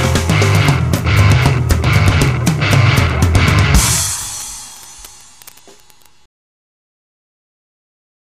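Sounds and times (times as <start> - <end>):
instrumental music: 0.0 - 6.2.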